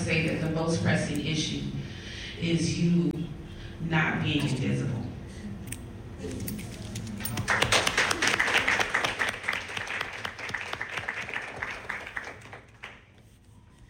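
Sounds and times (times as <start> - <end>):
speech: 0.1 - 1.8, 2.4 - 5.0
audience applause: 7.3 - 13.0.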